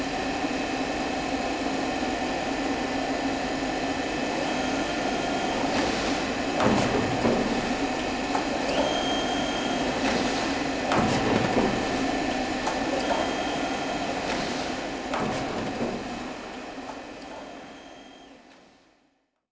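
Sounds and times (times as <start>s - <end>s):
tyre factory floor machine noise: 0.0s - 18.8s
pneumatic decompression hiss in a tyre factory: 4.8s - 16.5s.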